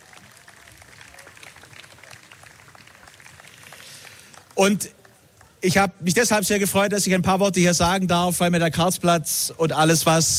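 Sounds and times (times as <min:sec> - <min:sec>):
crowd clapping: 0:00.0 - 0:05.7
speech: 0:04.6 - 0:05.0, 0:05.6 - 0:10.3.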